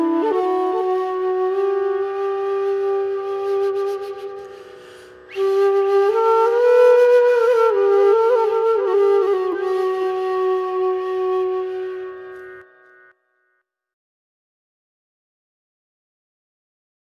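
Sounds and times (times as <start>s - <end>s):
flute instrumental: 0.0s - 13.2s.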